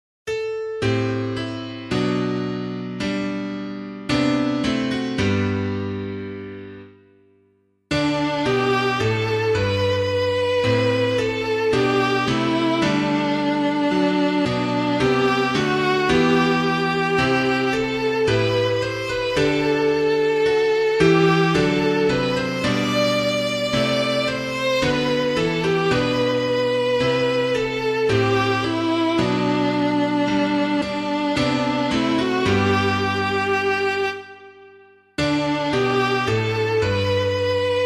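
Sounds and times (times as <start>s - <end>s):
piano: 0.3s - 37.8s.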